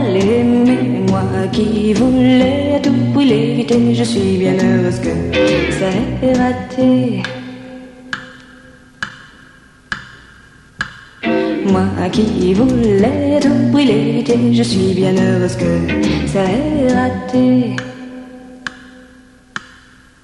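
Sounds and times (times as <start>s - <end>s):
sexy French song: 0.0s - 7.0s, 11.2s - 17.7s.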